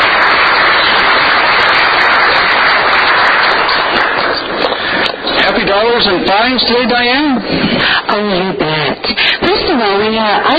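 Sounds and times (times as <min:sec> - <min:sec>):
audience applause: 0:00.0 - 0:06.0
speech: 0:05.8 - 0:10.5.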